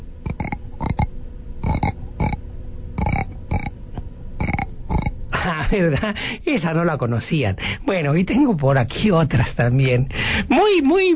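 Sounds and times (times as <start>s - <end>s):
frog croaking: 0.2s - 2.4s, 3.0s - 3.8s, 4.4s - 5.2s
speech: 5.7s - 11.1s.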